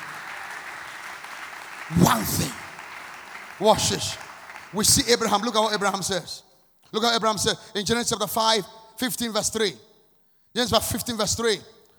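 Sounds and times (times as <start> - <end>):
audience clapping: 0.0 - 5.5
speech: 1.9 - 2.6, 3.6 - 9.9, 10.5 - 11.8.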